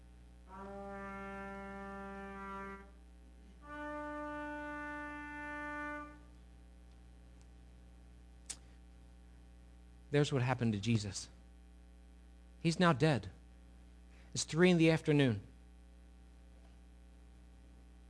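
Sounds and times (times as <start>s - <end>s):
shofar horn blasts: 0.5s - 3.0s, 3.6s - 6.3s
speech: 10.1s - 11.4s, 12.6s - 13.4s, 14.3s - 15.5s.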